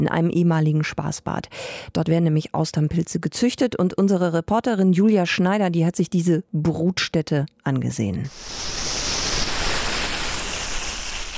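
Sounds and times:
speech: 0.0 - 9.0
garden hose spraying water: 8.3 - 11.3.

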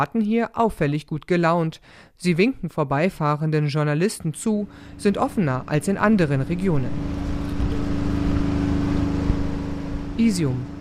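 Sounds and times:
speech: 0.0 - 7.5, 10.2 - 10.7
loud humming power generator: 4.5 - 10.7.

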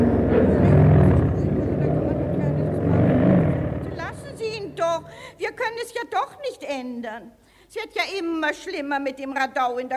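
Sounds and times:
motorcycle engine being started: 0.0 - 5.2
speech: 6.7 - 9.9.

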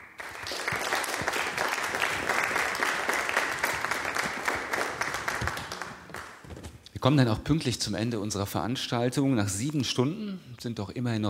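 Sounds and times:
audience applause: 0.0 - 6.6
speech: 7.0 - 11.2.

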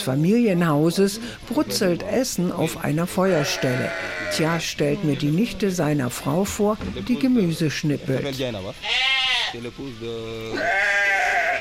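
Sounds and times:
speech: 0.0 - 11.6
rams bleating from neighbouring house: 3.2 - 5.5, 8.7 - 9.6, 10.4 - 11.6.

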